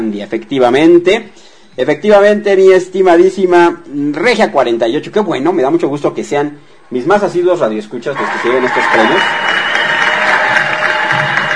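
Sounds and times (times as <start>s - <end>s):
speech: 0.0s - 9.5s
audience applause: 8.2s - 11.5s.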